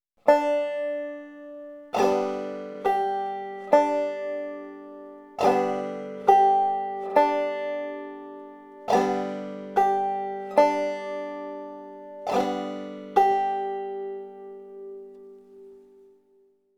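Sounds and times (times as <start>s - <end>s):
banjo: 0.2s - 16.2s.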